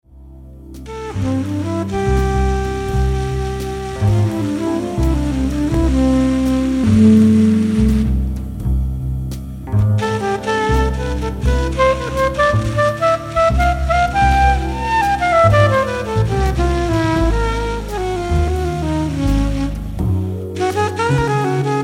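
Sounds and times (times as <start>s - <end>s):
song: 0.4s - 21.8s.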